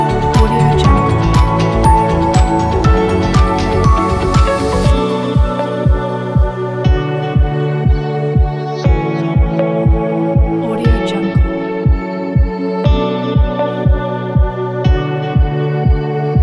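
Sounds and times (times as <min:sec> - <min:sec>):
inspiring ambient cinematic corporate music: 0:00.0 - 0:16.4.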